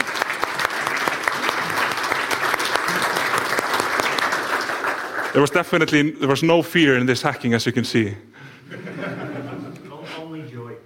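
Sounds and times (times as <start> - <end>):
audience applause: 0.0 - 5.9
speech: 5.4 - 8.9
laughter: 8.4 - 10.3.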